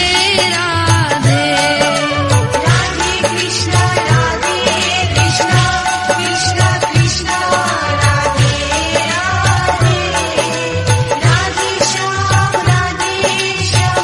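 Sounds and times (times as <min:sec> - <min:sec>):
bhajan ringtone: 0:00.2 - 0:14.0.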